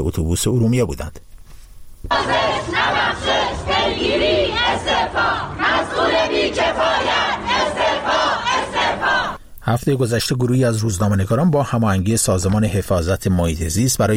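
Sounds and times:
speech: 0:00.0 - 0:01.3, 0:02.0 - 0:07.8, 0:09.7 - 0:14.1
crowd of protesters chanting and shouting outside a building: 0:02.1 - 0:09.4.

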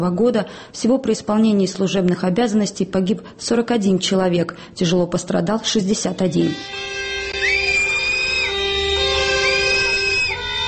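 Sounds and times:
speech: 0:00.0 - 0:07.1
protesters whistling: 0:07.3 - 0:10.5.

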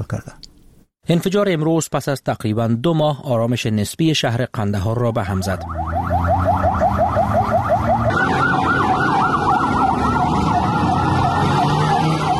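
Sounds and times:
speech: 0:00.0 - 0:00.4, 0:01.1 - 0:05.8
ambulance siren: 0:05.2 - 0:12.3
traffic rumble: 0:05.3 - 0:12.3.

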